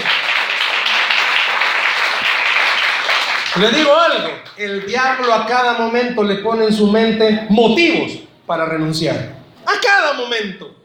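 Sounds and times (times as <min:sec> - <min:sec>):
audience applauding: 0:00.0 - 0:05.4
speech: 0:03.6 - 0:10.8.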